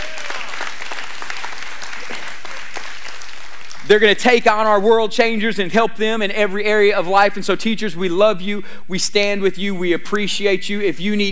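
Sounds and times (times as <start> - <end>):
audience applause: 0.0 - 3.9
speech: 3.9 - 11.2.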